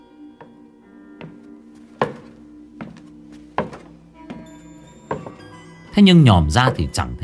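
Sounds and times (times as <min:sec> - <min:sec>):
footsteps on the wooden floor of a house at night: 0:01.2 - 0:05.9
walking stick knocking on a wooden floor: 0:02.0 - 0:03.0, 0:03.6 - 0:04.5, 0:05.1 - 0:05.4
speech: 0:06.0 - 0:07.2.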